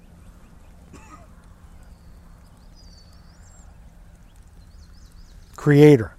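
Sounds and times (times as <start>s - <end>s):
birds whistling: 0.0s - 5.7s.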